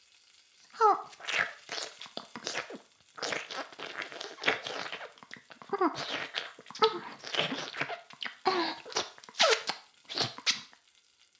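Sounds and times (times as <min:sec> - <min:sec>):
oral sex sounds: 0:00.7 - 0:10.7.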